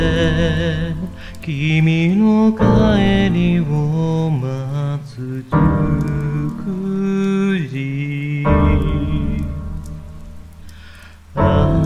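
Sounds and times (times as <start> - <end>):
rain falling: 0.0 - 11.8
speech: 0.4 - 8.8.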